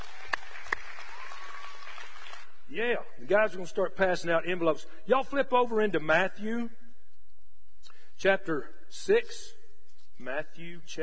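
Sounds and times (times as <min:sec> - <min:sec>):
church congregation applauding the tithes and offerings: 0:00.0 - 0:02.6
speech: 0:02.7 - 0:06.8, 0:08.2 - 0:09.6, 0:10.2 - 0:11.0.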